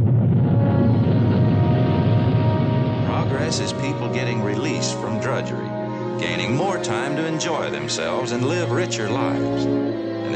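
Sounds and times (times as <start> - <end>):
rocket launch roar: 0.0 - 5.2
speech: 3.5 - 10.3.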